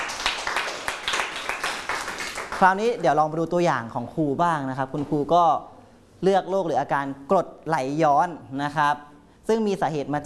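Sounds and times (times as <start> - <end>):
children clapping for a classmate in a lesson: 0.0 - 2.8
speech: 2.6 - 10.2.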